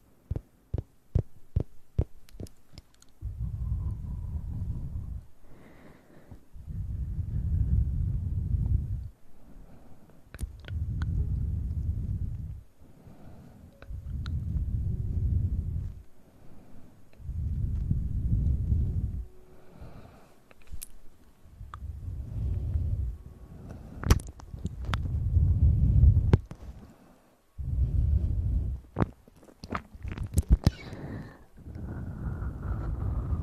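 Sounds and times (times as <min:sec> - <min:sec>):
mouth clicks and smacks: 0:00.3 - 0:04.0, 0:10.3 - 0:12.4, 0:24.0 - 0:25.1, 0:28.8 - 0:31.0
low muffled mouth blowing bursts: 0:03.2 - 0:09.1, 0:10.3 - 0:20.8, 0:21.5 - 0:26.9, 0:27.6 - 0:33.4.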